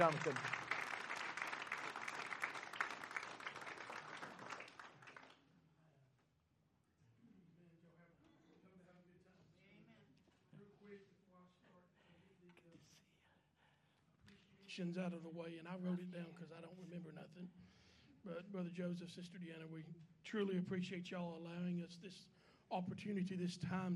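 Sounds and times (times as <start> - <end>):
speech: 0.0 - 0.5, 14.8 - 23.9
audience applause: 0.0 - 5.4.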